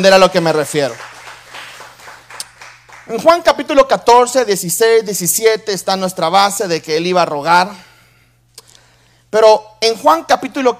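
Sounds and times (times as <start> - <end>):
speech: 0.0 - 1.0, 3.1 - 7.9, 9.3 - 10.7
audience applause: 0.4 - 3.3.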